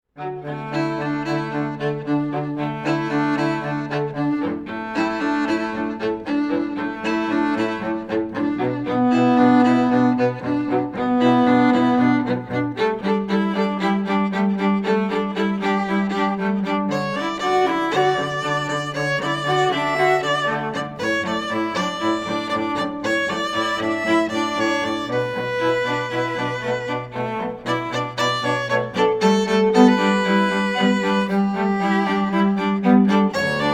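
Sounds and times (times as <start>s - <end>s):
musical trio: 0.2s - 33.7s.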